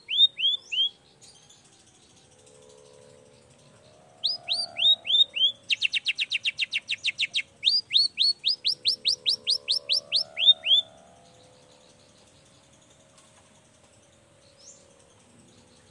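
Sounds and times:
long-tailed shrike song: 0.0 - 12.6
low hum: 0.0 - 15.9.

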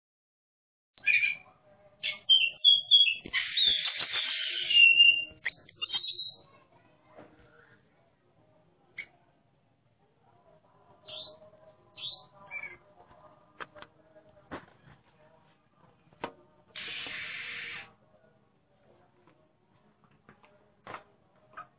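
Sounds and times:
Oriental magpie-robin competition song of varied whistles, chirps and warbled phrases: 1.0 - 6.5, 11.0 - 12.9.

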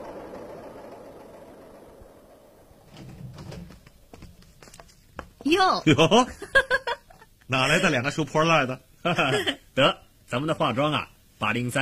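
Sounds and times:
cargo trucks and hand tractors driving past on a dirt road: 0.0 - 2.9
speech: 5.4 - 6.8, 7.5 - 11.8
laughter: 5.9 - 8.0, 9.1 - 9.6.

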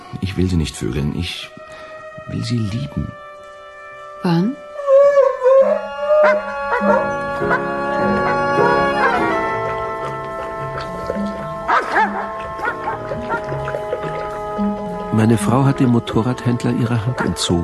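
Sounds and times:
speech: 0.1 - 1.6, 2.3 - 3.2, 4.2 - 4.6, 15.2 - 17.6
dogs barking: 5.2 - 15.0, 17.0 - 17.6.

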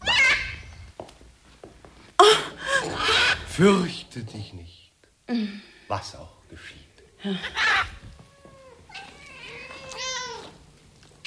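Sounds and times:
cats meowing and caterwauling: 0.0 - 0.9, 2.6 - 3.5, 7.3 - 10.6
speech: 3.6 - 7.9.

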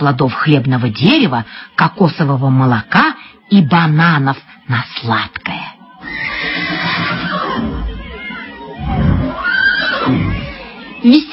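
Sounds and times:
speech: 0.0 - 5.5, 11.0 - 11.3
horse neighing: 6.0 - 10.8.

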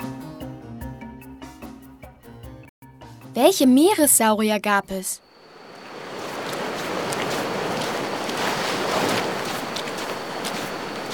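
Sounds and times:
speech: 3.4 - 5.2
wind at the shore: 4.8 - 11.1
sea waves at the shore: 5.2 - 11.1.

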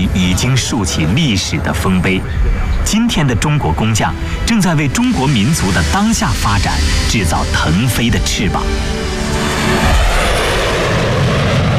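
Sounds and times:
large jet airliner taking off: 0.0 - 11.7
speech: 0.4 - 10.4.

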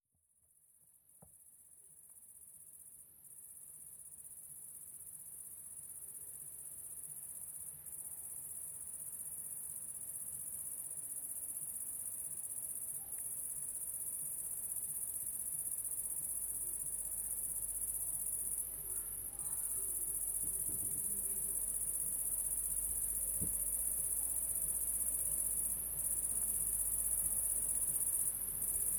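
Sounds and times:
cricket trilling: 6.2 - 28.9.

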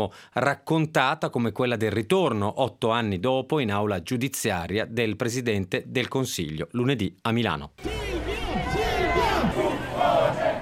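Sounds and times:
speech: 0.0 - 8.1
crowd shouting slogans outside courthouse: 7.8 - 10.6.

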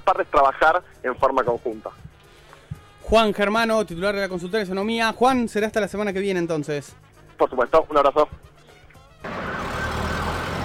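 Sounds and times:
speech: 0.1 - 2.1, 3.1 - 8.5
city street traffic: 8.5 - 10.6
siren: 9.2 - 10.6.

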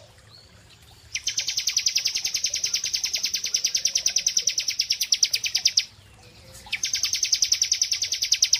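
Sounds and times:
prinia singing: 1.1 - 8.5.

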